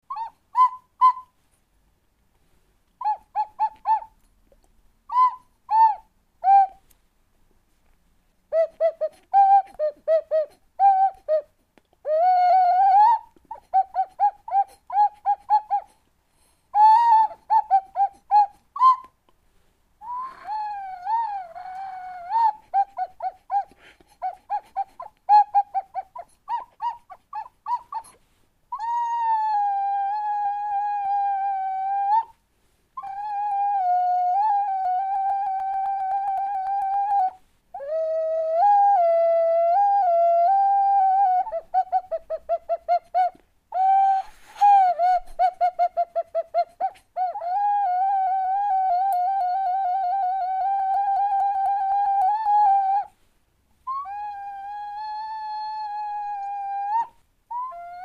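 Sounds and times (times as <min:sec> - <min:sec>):
Argentine ocarina: 0:02.9 - 0:07.0, 0:07.8 - 0:19.4, 0:20.0 - 0:32.4, 0:33.0 - 0:53.2.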